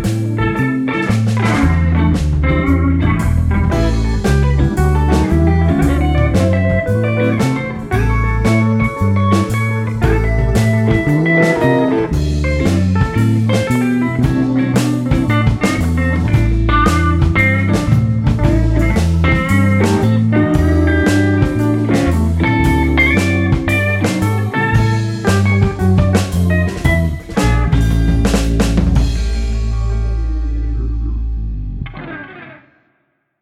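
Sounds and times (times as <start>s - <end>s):
jazzy blues music: 0.0s - 32.5s.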